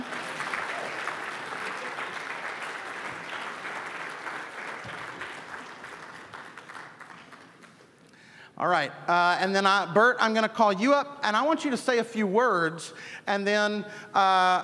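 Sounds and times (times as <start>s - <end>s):
audience applause: 0.0s - 7.8s
speech: 8.6s - 14.6s.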